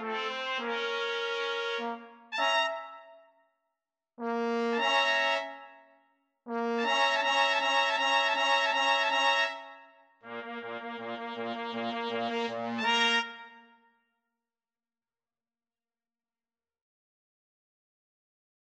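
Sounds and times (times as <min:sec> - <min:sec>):
trombone: 0:00.0 - 0:03.0, 0:04.2 - 0:05.6, 0:06.5 - 0:09.7, 0:10.3 - 0:13.6
two trumpets: 0:00.0 - 0:03.1, 0:06.5 - 0:13.8.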